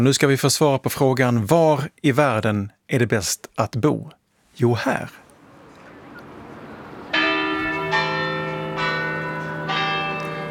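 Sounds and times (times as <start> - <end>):
speech: 0.0 - 5.2
church bells in central Copenhagen: 5.9 - 10.4.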